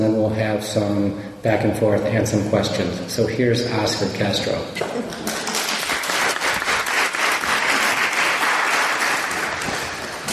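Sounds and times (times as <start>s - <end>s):
speech: 0.2s - 5.3s
audience applause: 5.2s - 10.3s.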